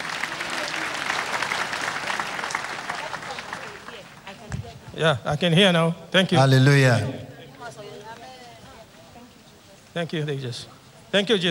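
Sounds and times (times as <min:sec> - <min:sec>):
crowd clapping: 0:00.0 - 0:04.4
speech: 0:05.0 - 0:07.2, 0:10.0 - 0:11.4.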